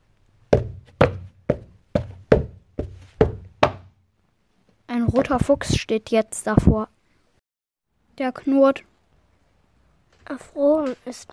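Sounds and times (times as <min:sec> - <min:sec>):
pounding on a gate: 0:00.6 - 0:04.0
speech: 0:05.1 - 0:07.0, 0:08.2 - 0:08.9, 0:10.3 - 0:11.3.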